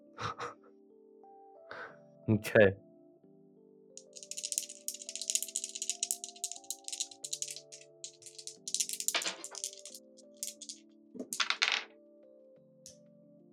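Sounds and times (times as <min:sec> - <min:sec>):
soft sustained music: 0:00.0 - 0:13.5
speech: 0:02.3 - 0:02.8
dice rattling in a cup or hand: 0:04.0 - 0:11.9.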